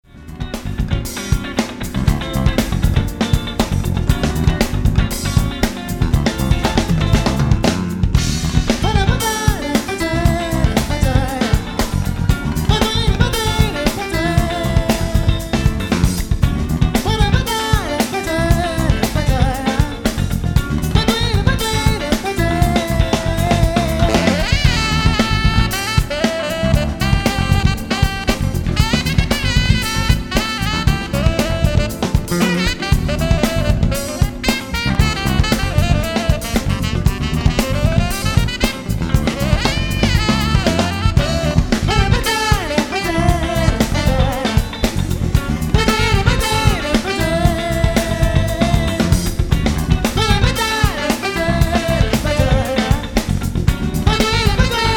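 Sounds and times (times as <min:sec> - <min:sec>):
Japanese instrumental music live version: 0:00.0 - 0:54.9.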